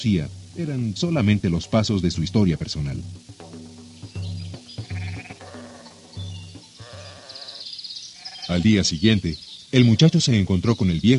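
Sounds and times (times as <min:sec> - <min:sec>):
speech: 0:00.0 - 0:03.4, 0:08.5 - 0:11.1
sheep bleating in a chorus: 0:04.6 - 0:08.9.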